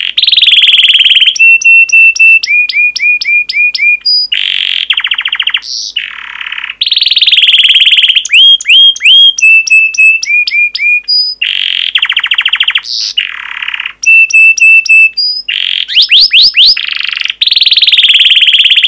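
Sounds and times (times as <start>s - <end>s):
canary song: 0.0s - 18.8s.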